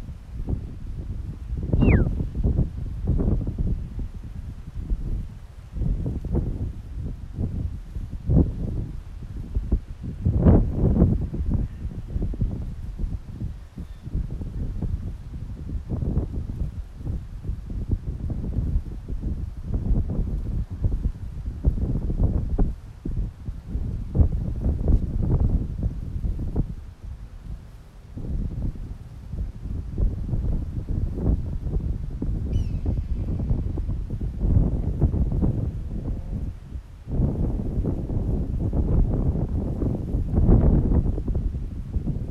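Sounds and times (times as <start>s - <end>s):
wind buffeting the microphone in San Pedro: 0.0s - 42.3s
red-tailed hawk crying: 1.8s - 2.1s
thin high call: 1.8s - 2.1s.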